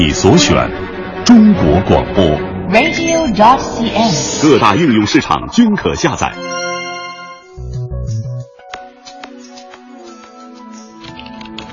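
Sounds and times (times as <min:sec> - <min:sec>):
speech: 0:00.0 - 0:06.6
tapping on a computer keyboard: 0:08.6 - 0:11.7.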